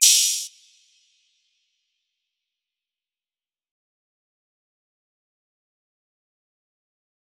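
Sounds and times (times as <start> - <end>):
open hi-hat: 0.0 - 0.5.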